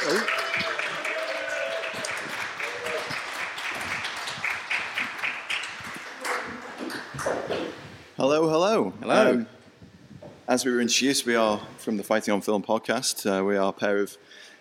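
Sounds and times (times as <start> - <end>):
crowd applauding: 0.0 - 7.4
speech: 8.2 - 9.5, 10.5 - 14.4.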